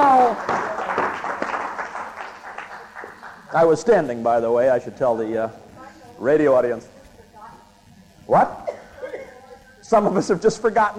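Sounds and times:
audience applause at a live event: 0.0s - 3.9s
speech: 3.6s - 5.6s, 6.2s - 7.0s, 8.3s - 8.6s, 9.9s - 10.9s.

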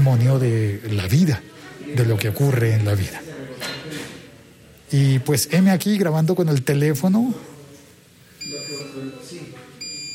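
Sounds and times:
speech: 0.1s - 3.3s, 4.9s - 7.5s
medical infusion machine beeping alarm: 8.4s - 10.1s.

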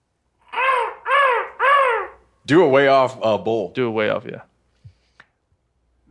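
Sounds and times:
person imitating a distant crow call: 0.4s - 2.2s
speech: 2.5s - 4.5s.

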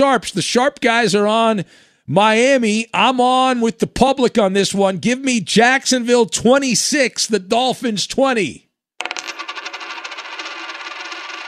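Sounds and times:
speech: 0.0s - 8.6s
coin clattering onto a hard surface after a flip: 9.0s - 11.4s.

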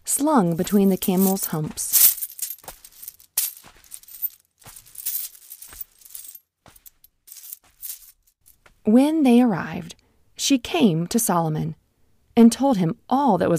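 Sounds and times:
speech: 0.2s - 2.0s, 8.9s - 11.8s, 12.4s - 13.5s
coins and metal valuables clinking in a bag: 0.5s - 8.4s.

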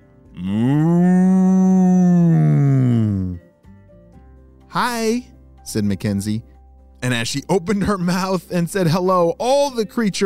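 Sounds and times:
cow mooing: 0.4s - 3.4s
speech: 4.8s - 10.2s.

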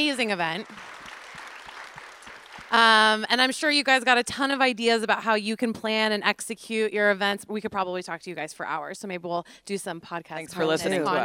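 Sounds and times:
speech: 0.0s - 0.9s, 2.7s - 11.2s
audience applause: 0.0s - 3.2s.

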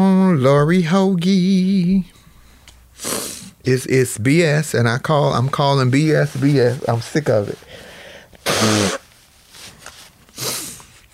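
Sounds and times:
speech: 0.4s - 2.2s, 3.0s - 7.8s, 8.6s - 9.0s
person blowing nose: 2.9s - 3.6s, 7.6s - 11.0s.

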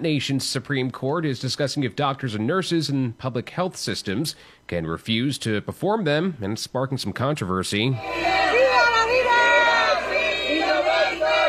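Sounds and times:
speech: 0.0s - 8.6s
pro-life youth group protesters shouting in front of Mexico's Supreme Court: 8.0s - 11.4s.

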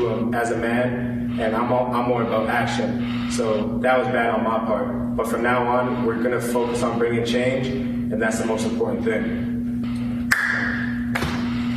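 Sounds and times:
speech: 0.0s - 9.5s
loud hand slap: 10.3s - 11.6s.

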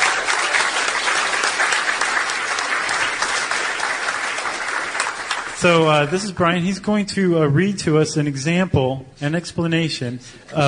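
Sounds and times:
round of applause: 0.0s - 6.2s
speech: 5.6s - 10.6s.

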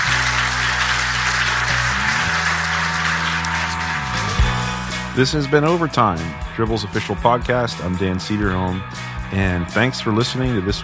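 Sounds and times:
round of applause: 0.0s - 5.2s
speech: 5.2s - 10.8s.

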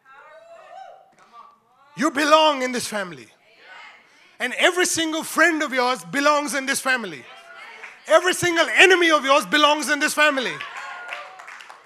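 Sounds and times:
speech: 2.0s - 3.4s, 4.4s - 7.4s, 8.1s - 10.7s
audience clapping: 7.6s - 11.8s.

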